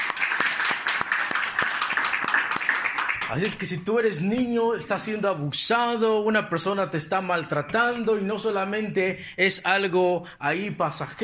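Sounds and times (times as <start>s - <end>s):
audience clapping: 0.0s - 3.8s
speech: 3.3s - 11.2s.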